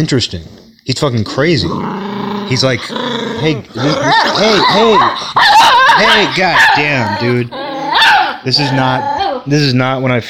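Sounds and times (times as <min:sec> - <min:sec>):
speech: 0:00.0 - 0:07.6, 0:08.4 - 0:10.2
dog barking: 0:04.1 - 0:08.8.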